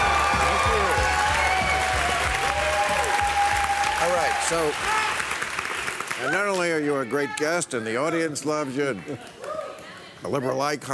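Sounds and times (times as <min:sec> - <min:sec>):
studio audience standing ovation for a congressman: 0:00.0 - 0:06.9
speech: 0:04.5 - 0:05.0, 0:06.2 - 0:09.4, 0:10.2 - 0:10.9.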